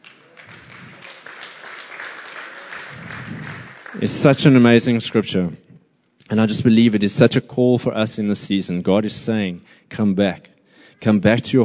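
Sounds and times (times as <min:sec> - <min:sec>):
audience clapping: 0:00.0 - 0:04.8
speech: 0:04.0 - 0:05.6, 0:06.3 - 0:11.6.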